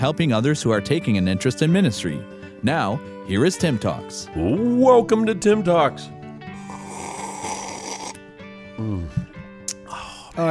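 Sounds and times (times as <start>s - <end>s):
speech: 0.0s - 6.2s
person sipping: 6.5s - 10.3s
person sniffing: 6.6s - 8.2s.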